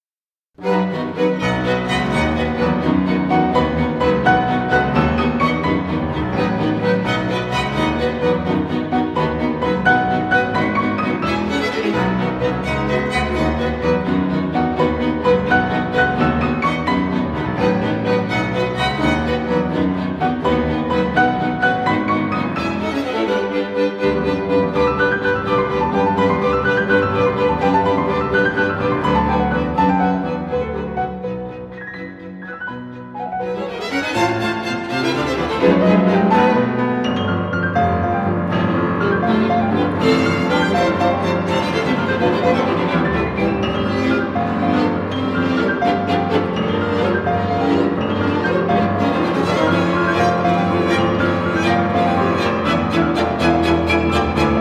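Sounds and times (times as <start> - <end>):
piano third movement: 0.5 - 54.5.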